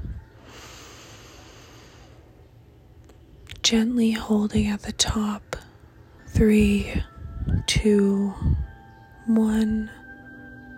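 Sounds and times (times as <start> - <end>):
slow deep breath in during a guided breathing exercise: 0.2 - 2.4
speech: 3.7 - 5.6, 6.4 - 7.1, 7.7 - 8.6, 9.3 - 10.0.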